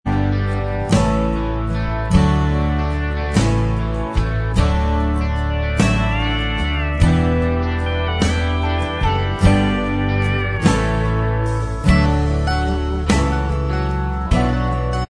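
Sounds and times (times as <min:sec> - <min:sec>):
instrumental music track: 0:00.1 - 0:15.0.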